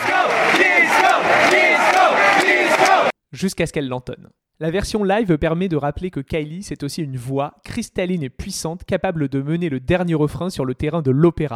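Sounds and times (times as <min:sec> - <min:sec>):
concert crowd chanting in unison to call for a song: 0:00.0 - 0:03.1
speech: 0:03.4 - 0:11.5.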